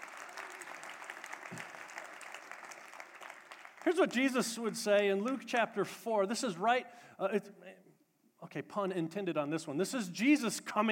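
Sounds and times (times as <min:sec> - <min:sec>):
audience applause: 0:00.0 - 0:04.1
speech: 0:03.8 - 0:07.8, 0:08.4 - 0:10.9.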